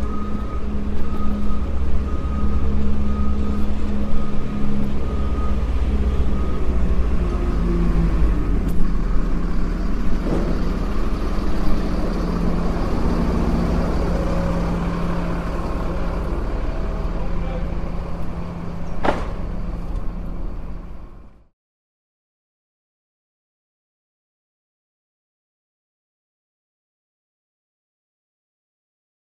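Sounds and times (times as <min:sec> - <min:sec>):
tow truck: 0:00.0 - 0:21.5.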